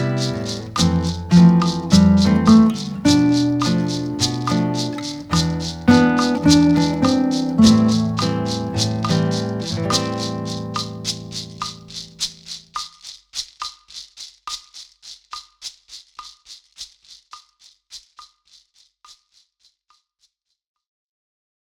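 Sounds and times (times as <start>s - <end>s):
musical accompaniment: 0.0s - 12.1s.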